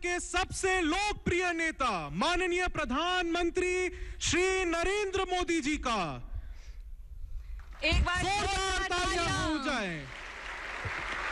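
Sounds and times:
speech: 0.0 - 6.3, 7.8 - 10.2
audience applause welcoming Prime Minister Narendra Modi: 9.9 - 11.3.

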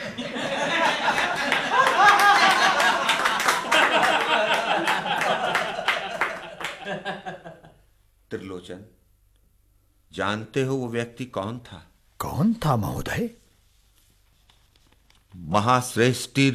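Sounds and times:
laughter: 0.0 - 7.8
crowd clapping in a steady rhythm: 1.0 - 7.1
speech: 8.3 - 9.0, 10.1 - 13.4, 15.4 - 16.5.

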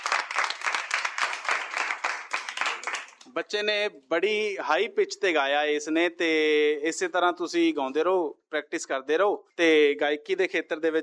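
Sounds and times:
enthusiastic audience applause for a child singer: 0.0 - 3.2
speech: 3.4 - 11.0.

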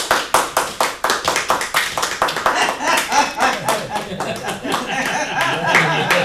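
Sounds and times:
crowd clapping along to dancing: 0.0 - 6.2
faint laughter and voices: 2.3 - 6.2.

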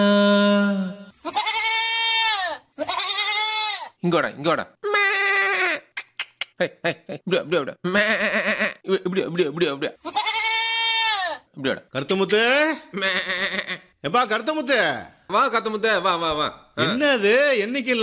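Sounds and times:
goat bleating: 1.2 - 4.0, 4.8 - 5.8, 7.9 - 8.9, 10.0 - 11.5
speech: 4.0 - 4.9, 6.6 - 10.2, 11.6 - 18.0.

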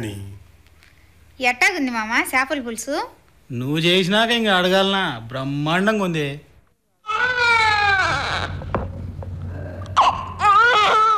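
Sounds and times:
speech: 0.0 - 0.4, 1.4 - 6.5
young boy crying in long wavering wails: 7.1 - 8.7, 10.0 - 11.1.

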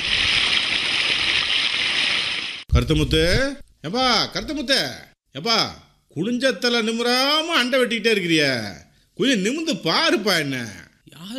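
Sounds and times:
water flowing through a field channel: 0.0 - 2.6
speech: 2.8 - 11.3.

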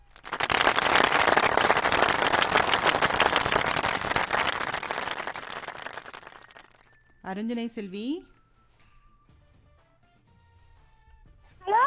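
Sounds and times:
audience applause for a caller: 0.0 - 6.9
speech: 7.3 - 8.4.

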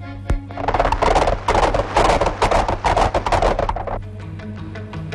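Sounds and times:
horse hooves clip-clopping: 0.3 - 4.0.

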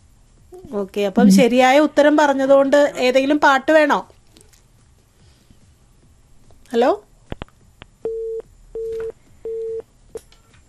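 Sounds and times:
speech: 0.6 - 4.1, 6.7 - 7.0
telephone busy tone after a call is cut off: 8.1 - 9.8.

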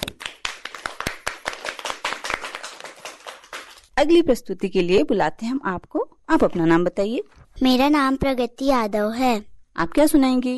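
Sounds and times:
children applauding: 0.0 - 3.9
speech: 4.0 - 10.5.

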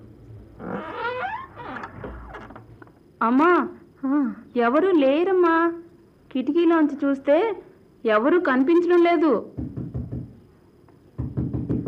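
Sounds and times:
speech: 3.2 - 9.6
slow knocking on a door late at night: 9.6 - 10.4, 11.2 - 11.8.

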